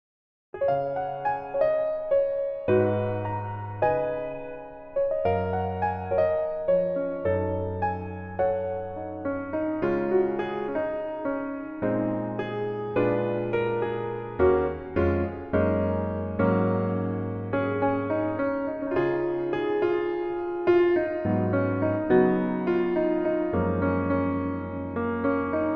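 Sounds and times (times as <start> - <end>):
piano melody backing track: 0.6 - 25.7.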